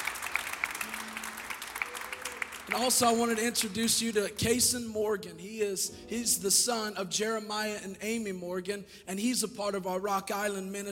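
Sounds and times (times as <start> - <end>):
audience applause: 0.0 - 4.2
speech: 2.7 - 10.9.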